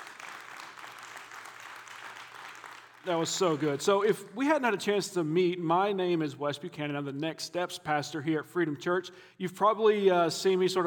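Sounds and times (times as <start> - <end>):
audience applause: 0.0 - 3.8
speech: 3.0 - 10.8.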